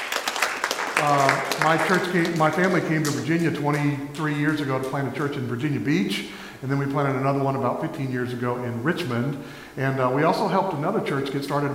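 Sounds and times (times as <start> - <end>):
crowd applauding: 0.0 - 4.2
speech: 1.0 - 11.7.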